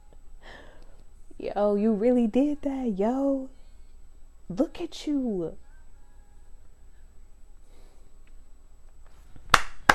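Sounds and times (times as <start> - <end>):
speech: 1.4 - 3.6, 4.5 - 5.6
hand claps from a single person: 9.4 - 9.9.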